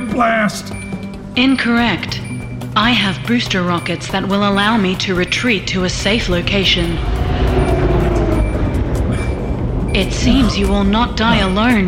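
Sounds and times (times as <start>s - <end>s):
speech: 0.2s - 0.8s, 1.4s - 2.2s, 2.8s - 7.6s, 10.0s - 11.8s
Quinjet jet aircraft arriving: 5.6s - 10.3s.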